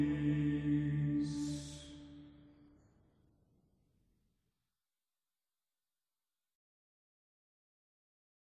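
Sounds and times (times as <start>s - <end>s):
Gregorian chant: 0.0s - 2.6s.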